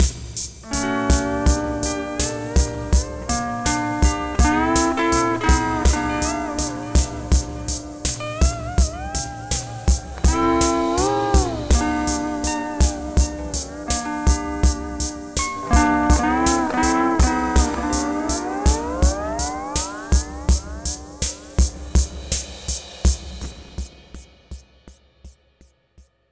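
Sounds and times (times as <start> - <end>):
lounge music: 0.0 - 21.6.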